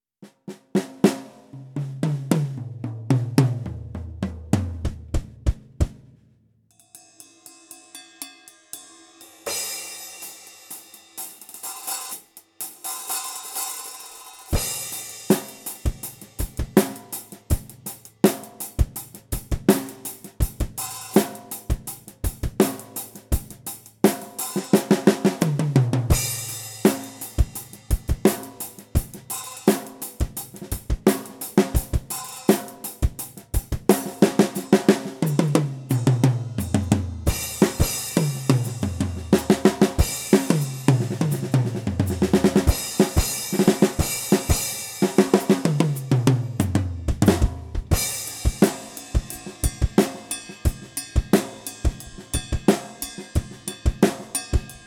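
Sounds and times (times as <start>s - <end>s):
studio drum kit: 0.2s - 6.2s, 6.8s - 54.8s.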